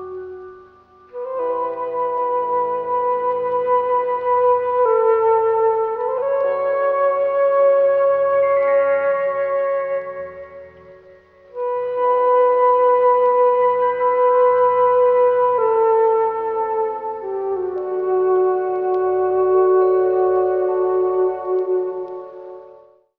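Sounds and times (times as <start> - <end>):
flute: 0.0 - 23.1
keyboard: 0.0 - 23.1.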